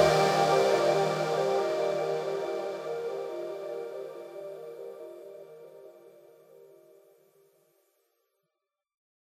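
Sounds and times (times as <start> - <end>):
grasslands music stem: 0.0 - 5.9.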